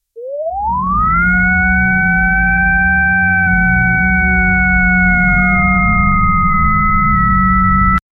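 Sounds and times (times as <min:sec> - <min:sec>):
defibrillator medical equipment: 0:00.2 - 0:08.0.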